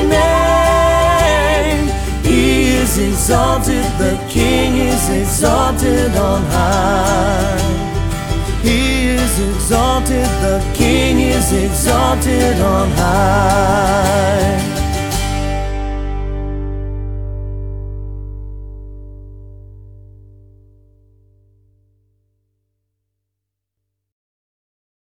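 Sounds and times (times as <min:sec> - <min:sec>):
acoustic worship music: 0:00.0 - 0:18.7.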